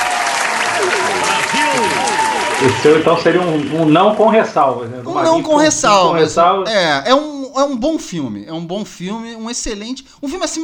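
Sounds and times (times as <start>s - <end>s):
audience applause: 0.0s - 5.0s
speech: 2.6s - 10.6s.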